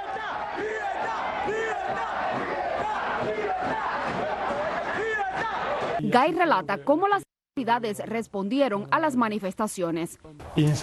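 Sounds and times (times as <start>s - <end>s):
protest crowd shouting and chanting: 0.0s - 7.0s
speech: 3.2s - 10.8s.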